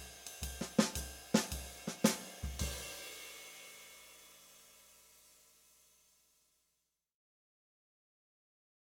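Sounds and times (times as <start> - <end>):
slow bop drumming: 0.0 - 3.5.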